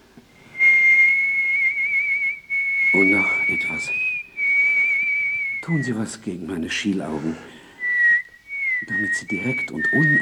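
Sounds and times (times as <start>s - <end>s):
man whistling while walking along the Graben in Vienna: 0.4s - 6.1s, 7.8s - 10.2s
speech: 3.0s - 4.1s, 5.6s - 7.5s, 8.9s - 10.2s.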